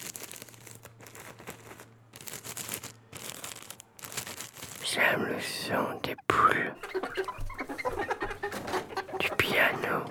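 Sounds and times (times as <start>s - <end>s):
paper being crumpled: 0.0s - 6.1s
speech: 4.9s - 7.4s
laughter: 6.6s - 10.0s.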